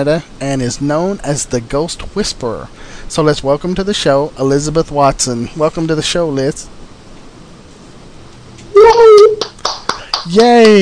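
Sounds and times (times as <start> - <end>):
speech: 0.0 - 6.8, 10.3 - 10.7
one person clapping hands: 8.8 - 10.7.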